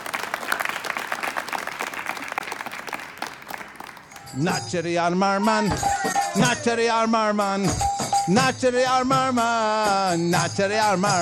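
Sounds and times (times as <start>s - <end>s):
audience applause: 0.0s - 4.4s
speech: 4.4s - 11.1s.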